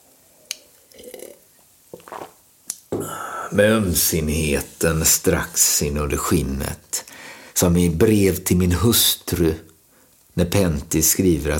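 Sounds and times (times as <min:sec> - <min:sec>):
drinking sips of water: 0:00.5 - 0:03.8
speech: 0:03.5 - 0:06.9, 0:07.6 - 0:09.7, 0:10.4 - 0:11.5.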